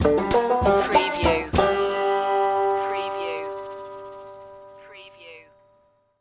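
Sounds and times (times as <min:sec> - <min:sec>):
music stinger: 0:00.0 - 0:04.9.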